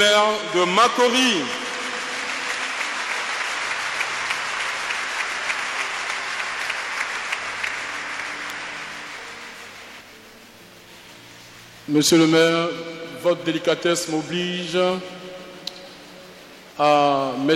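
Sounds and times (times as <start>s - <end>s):
speech: 0.0s - 1.6s, 11.9s - 15.2s, 16.8s - 17.5s
sustained audience applause for the mayor of Makori: 1.0s - 10.0s.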